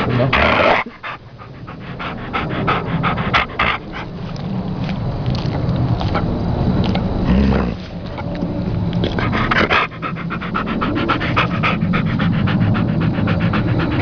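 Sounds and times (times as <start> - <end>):
dog panting: 0.0 - 6.3, 9.0 - 13.9
steady low rumbling background noise: 0.0 - 13.9.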